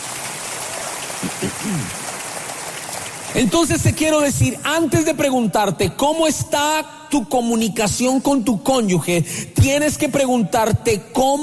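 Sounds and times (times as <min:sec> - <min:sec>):
audience clapping: 0:00.0 - 0:04.2
speech: 0:01.2 - 0:02.0, 0:03.3 - 0:11.4.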